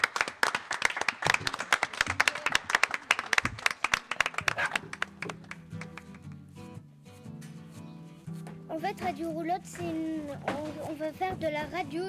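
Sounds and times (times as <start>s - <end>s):
applause from a small group: 0.0s - 6.3s
speech: 9.0s - 12.0s.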